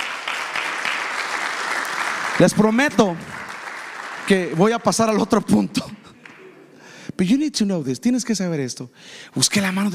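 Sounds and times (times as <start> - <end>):
audience applauding loudly: 0.0 - 6.6
speech: 2.4 - 3.3, 4.3 - 6.0, 7.2 - 9.9.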